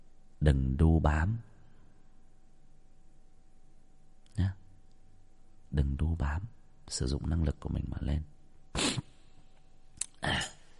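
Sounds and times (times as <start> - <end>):
speech: 0.4 - 1.5, 4.4 - 4.6, 5.7 - 8.8
person sniffling from a cold: 8.7 - 9.3.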